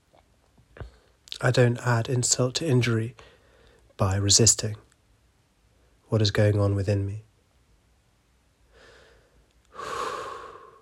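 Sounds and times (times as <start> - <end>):
speech: 1.4 - 3.3, 4.0 - 4.9, 6.1 - 7.3
person breathing slowly and deliberately: 3.2 - 3.9, 8.7 - 10.8.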